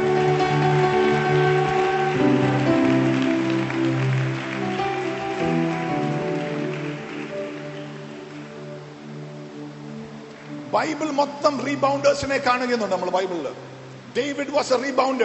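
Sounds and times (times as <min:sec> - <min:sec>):
audience clapping: 0:00.0 - 0:11.7
sustained musical tones: 0:00.0 - 0:12.0
speech: 0:10.8 - 0:15.2.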